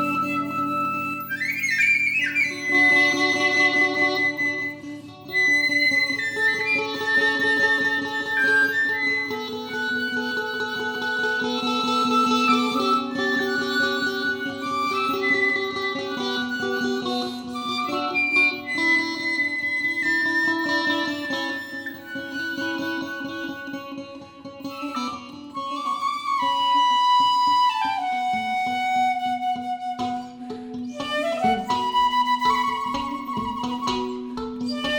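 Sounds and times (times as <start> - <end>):
piccolo fretless guitar: 0.0 - 34.9.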